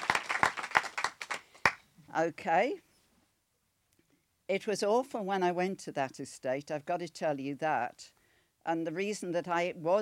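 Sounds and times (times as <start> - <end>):
audience applause: 0.0 - 1.8
speech: 2.2 - 2.9, 4.5 - 10.0.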